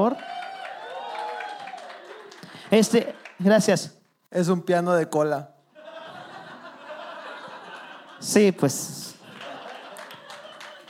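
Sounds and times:
speech: 0.0s - 0.4s, 2.7s - 5.5s, 8.2s - 9.1s
audience applause: 0.0s - 3.9s, 9.1s - 10.8s
laughter: 5.7s - 10.8s.

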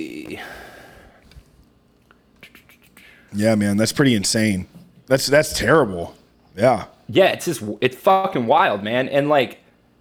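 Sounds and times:
speech: 0.0s - 0.7s, 3.3s - 9.6s
person yawning: 0.0s - 1.0s.

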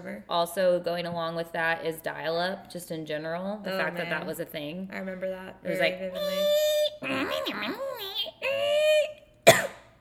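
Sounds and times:
speech: 0.0s - 8.2s
coughing fit after choking: 9.4s - 9.9s.

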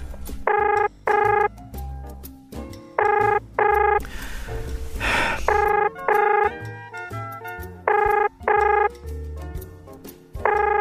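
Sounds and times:
phone call ringing unanswered: 0.4s - 1.5s, 3.0s - 4.0s, 5.5s - 6.7s, 7.9s - 9.0s, 10.4s - 10.7s.

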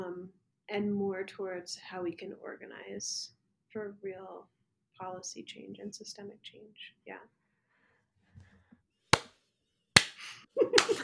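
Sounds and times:
speech: 0.7s - 7.4s, 10.6s - 11.0s
single hand clap: 9.1s - 9.4s, 10.0s - 11.0s.

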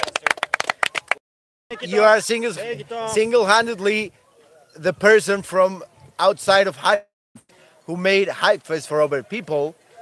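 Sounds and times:
quick patter of applause: 0.0s - 1.2s
speech: 1.7s - 7.1s, 7.9s - 9.8s.

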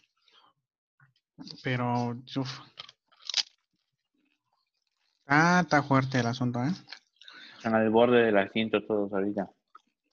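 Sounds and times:
speech: 1.4s - 2.8s, 5.3s - 7.0s, 7.6s - 9.6s
crunchy snack being chewed: 2.8s - 3.6s.

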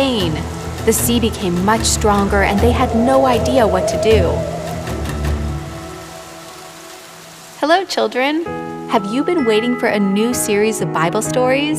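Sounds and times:
speech: 0.0s - 4.6s, 7.6s - 11.7s
storm rain sound effect: 0.0s - 10.6s
deep rumble of thunder sound effect: 0.4s - 7.6s.

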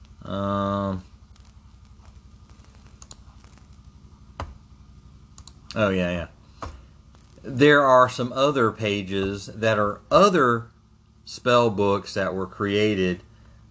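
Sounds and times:
speech: 0.3s - 1.1s, 5.8s - 6.7s, 7.4s - 10.7s, 11.3s - 13.6s
computer mouse clicking through late-90s web pages: 5.4s - 5.6s.

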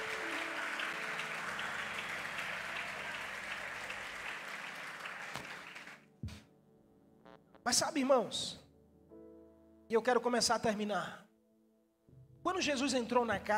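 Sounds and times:
audience applauding: 0.0s - 6.2s
speech: 7.7s - 8.6s, 9.9s - 11.3s, 12.5s - 13.5s.

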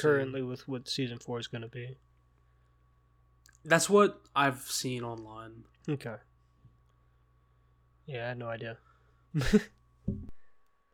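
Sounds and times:
speech: 0.0s - 2.1s, 3.6s - 6.3s, 8.1s - 10.3s
sharp breathy cough: 9.4s - 9.8s.

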